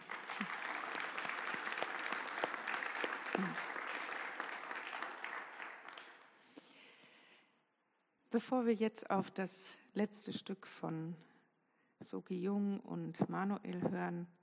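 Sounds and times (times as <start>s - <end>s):
audience applause: 0.0s - 6.3s
speech: 3.4s - 3.7s, 8.3s - 11.3s, 12.0s - 14.4s.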